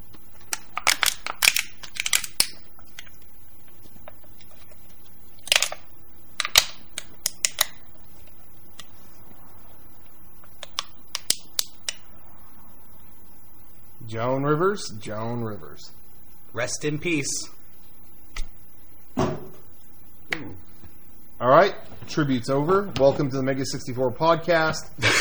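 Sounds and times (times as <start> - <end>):
crushing an empty drink can: 0.4 - 3.1, 5.4 - 5.8, 6.4 - 7.8
speech: 14.1 - 17.6, 21.5 - 25.1.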